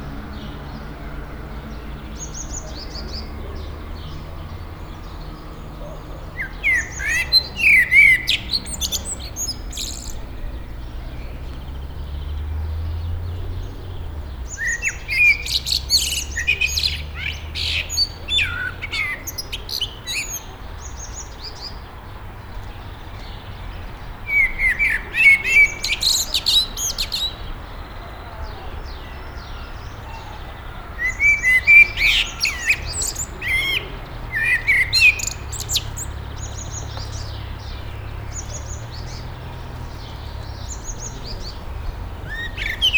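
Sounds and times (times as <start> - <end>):
blackbird at Nyíregyháza zoo: 0.0 - 42.9.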